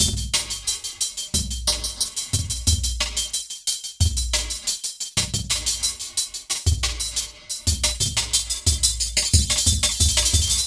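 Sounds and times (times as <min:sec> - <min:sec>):
square chops downbeat dance groove at 90 BPM: 0:00.0 - 0:10.6.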